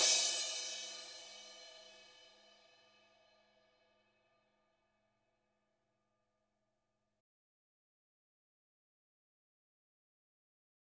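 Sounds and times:
cymbal: 0:00.0 - 0:03.5.

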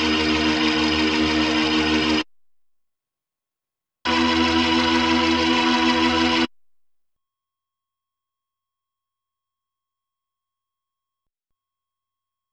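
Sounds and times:
Hammond B3 organ: 0:00.0 - 0:02.2, 0:04.1 - 0:06.5.

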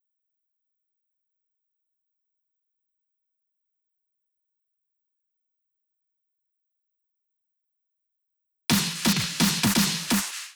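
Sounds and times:
snare drum fill loop at 128 BPM: 0:08.7 - 0:10.5.

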